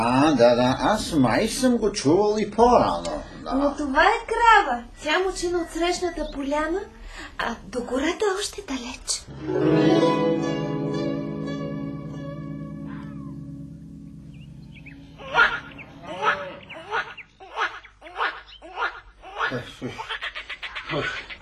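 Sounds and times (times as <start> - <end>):
speech: 0.0 - 10.7
frogs croaking: 12.8 - 21.4.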